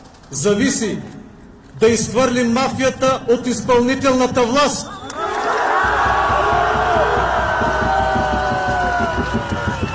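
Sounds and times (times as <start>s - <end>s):
speech: 0.3s - 1.2s, 1.8s - 5.0s
protest crowd shouting in the streets of Sofia: 5.1s - 9.8s.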